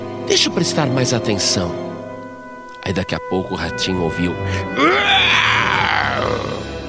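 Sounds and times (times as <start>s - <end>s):
speech: 0.3s - 1.9s, 2.9s - 6.6s
voice imitating hoarse lion roar: 4.8s - 6.7s.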